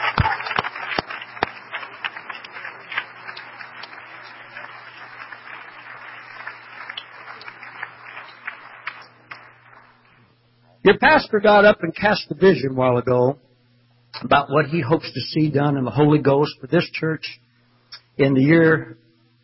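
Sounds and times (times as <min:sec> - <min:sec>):
hand clap of praise: 0:00.0 - 0:10.3
speech: 0:10.9 - 0:13.4, 0:14.2 - 0:17.4, 0:18.2 - 0:19.0.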